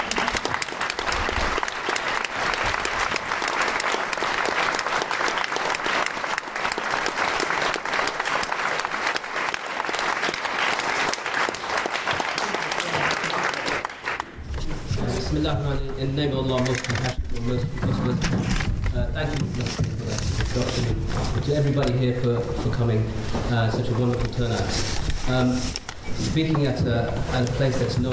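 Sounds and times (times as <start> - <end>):
audience round of applause: 0.0 - 14.4
speech: 15.5 - 28.1.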